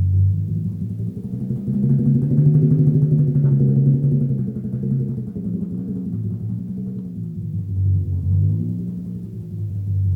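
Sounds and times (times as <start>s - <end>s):
drum roll: 0.2s - 10.0s.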